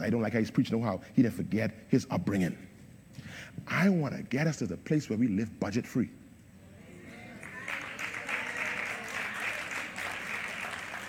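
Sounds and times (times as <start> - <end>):
speech: 0.0 - 6.2
audience clapping: 7.1 - 11.0.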